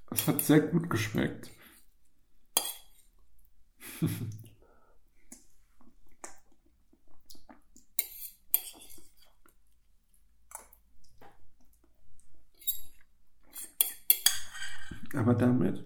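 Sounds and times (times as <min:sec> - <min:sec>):
speech: 0:00.2 - 0:01.6, 0:04.0 - 0:04.4, 0:15.1 - 0:15.8
fork and cutlery clinking and scraping on a plate while eating: 0:02.6 - 0:03.0, 0:08.0 - 0:09.0, 0:12.6 - 0:14.8.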